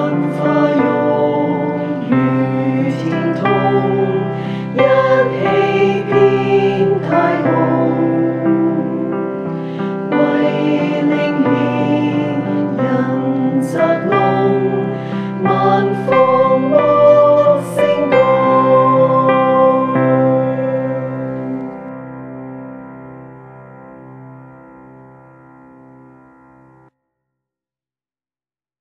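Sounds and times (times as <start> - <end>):
choir singing: 0.0 - 21.9.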